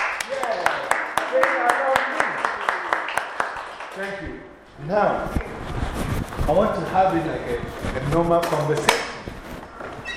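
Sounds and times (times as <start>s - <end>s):
audience clapping: 0.0s - 4.4s
speech: 4.0s - 5.5s, 6.5s - 9.0s.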